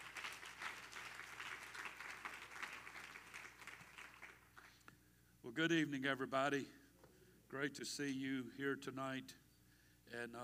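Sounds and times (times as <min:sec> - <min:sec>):
audience clapping: 0:00.0 - 0:04.8
speech: 0:05.4 - 0:06.8, 0:07.5 - 0:09.4, 0:10.1 - 0:10.4.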